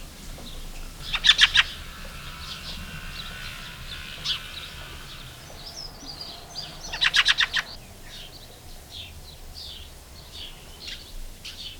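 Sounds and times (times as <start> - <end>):
fieldfare song of sharp dry chack notes and squeaky chattering phrases: 1.0 - 7.8.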